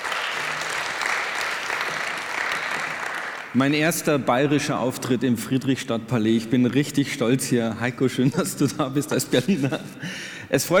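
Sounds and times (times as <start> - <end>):
audience applause: 0.0 - 3.6
speech: 3.6 - 10.7
laughter: 8.1 - 10.1.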